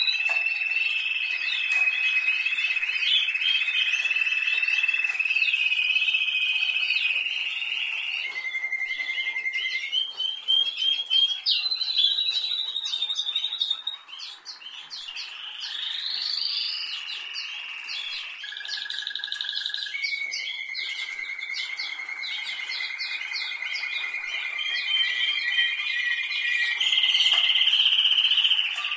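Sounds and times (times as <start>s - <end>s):
canary song: 0.0s - 28.9s.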